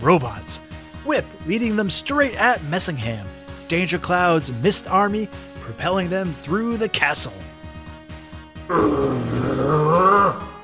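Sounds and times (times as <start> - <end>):
speech: 0.0 - 7.5, 8.7 - 10.5
deep menacing growl from a voice: 8.7 - 10.6.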